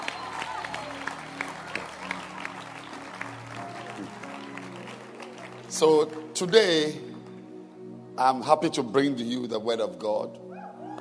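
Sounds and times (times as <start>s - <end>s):
audience clapping: 0.0s - 7.4s
speech: 5.8s - 7.1s, 8.2s - 10.5s.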